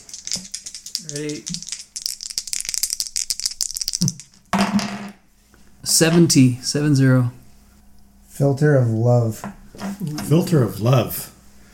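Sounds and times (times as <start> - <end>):
D100 dice rolling: 0.0 - 5.1
speech: 0.4 - 1.8, 5.9 - 7.4, 8.4 - 11.3.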